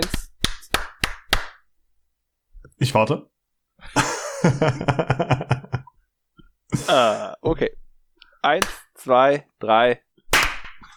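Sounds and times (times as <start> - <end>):
group clapping: 0.0 - 1.6, 8.6 - 8.9, 10.3 - 10.9
speech: 2.8 - 5.6, 6.7 - 7.8, 8.4 - 10.0
laughter: 3.9 - 5.9.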